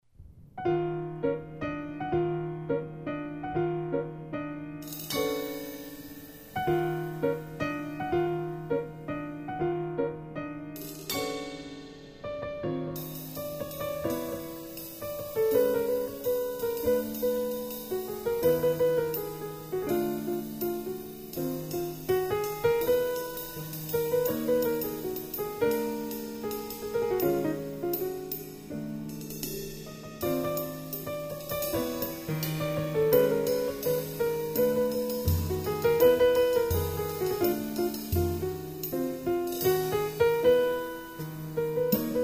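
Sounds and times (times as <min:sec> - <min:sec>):
piano: 0:00.0 - 0:42.2
drum: 0:13.0 - 0:42.2.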